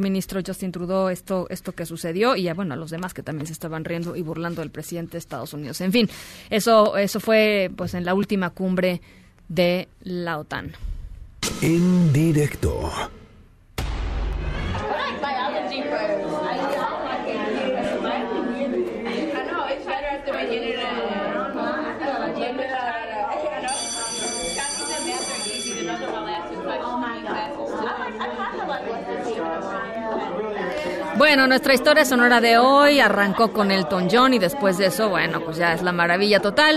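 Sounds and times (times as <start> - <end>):
speech: 0.0 - 13.2, 31.2 - 36.7
secondary school students chatting: 14.8 - 36.7.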